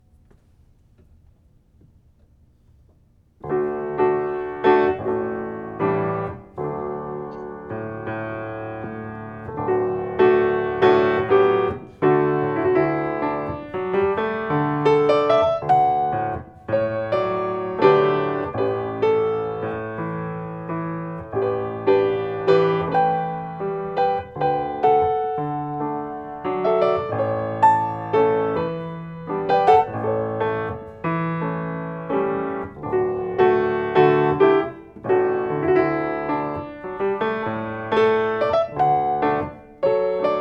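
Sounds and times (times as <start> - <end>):
slow tango in D at 77 bpm: 2.8 - 40.3.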